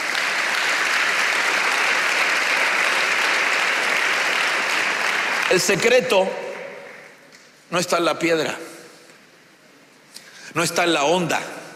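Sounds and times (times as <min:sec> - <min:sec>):
audience clapping: 0:00.0 - 0:07.6
speech: 0:05.5 - 0:06.4, 0:07.7 - 0:08.7, 0:10.6 - 0:11.6.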